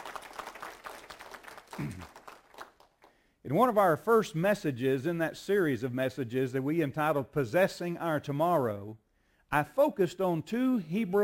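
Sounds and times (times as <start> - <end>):
audience hand clapping: 0.0 - 3.2
speech: 1.8 - 2.1, 3.5 - 11.2.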